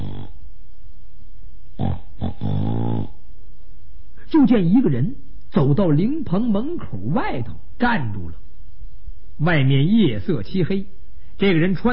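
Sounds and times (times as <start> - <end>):
voice imitating snoring: 0.0 - 0.4, 1.8 - 3.2
speech: 4.4 - 8.4, 9.4 - 11.9.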